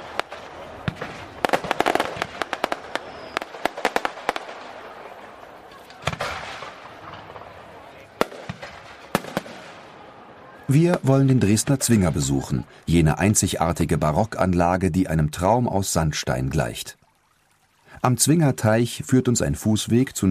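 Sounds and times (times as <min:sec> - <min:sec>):
fireworks rockets exploding over a city: 0:00.0 - 0:05.2, 0:05.8 - 0:07.6, 0:08.2 - 0:10.0
speech: 0:10.7 - 0:17.0, 0:18.0 - 0:20.2.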